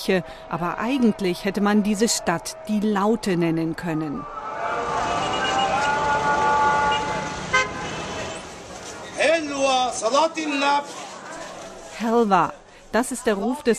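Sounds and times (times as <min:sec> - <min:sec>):
speech: 0:00.0 - 0:04.5, 0:10.0 - 0:11.0, 0:12.0 - 0:13.7
constant roadway rumble: 0:04.2 - 0:12.9
car horns honking in jammed Cairo traffic: 0:04.6 - 0:08.5.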